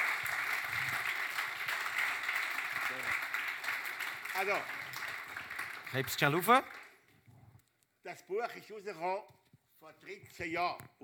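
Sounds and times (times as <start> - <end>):
audience applause: 0.0 - 7.0
speech: 4.4 - 4.8, 5.9 - 6.8, 8.1 - 11.0.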